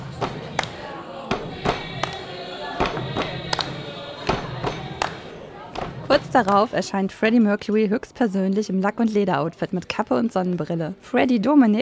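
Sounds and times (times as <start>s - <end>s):
crowd in the Hard Rock Café stomping and clapping along: 0.0s - 6.8s
speech: 6.3s - 11.8s.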